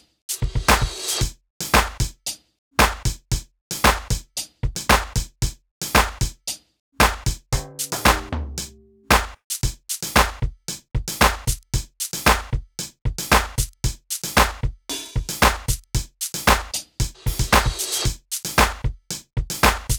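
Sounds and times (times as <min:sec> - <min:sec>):
percussion: 0:00.0 - 0:19.9.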